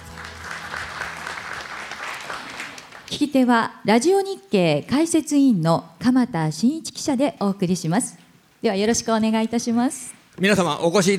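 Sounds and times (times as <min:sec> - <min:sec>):
audience applause: 0:00.0 - 0:03.2
speech: 0:03.1 - 0:11.1.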